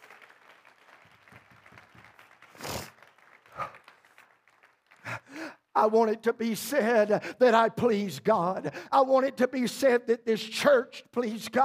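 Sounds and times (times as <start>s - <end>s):
audience clapping hands: 0.0s - 5.7s
speech: 5.8s - 11.6s.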